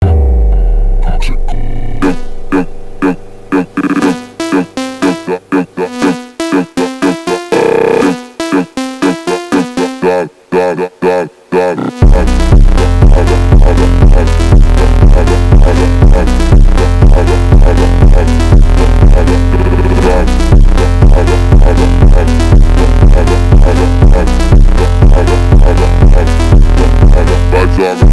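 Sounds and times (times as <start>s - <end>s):
phonk music: 0.0s - 28.1s.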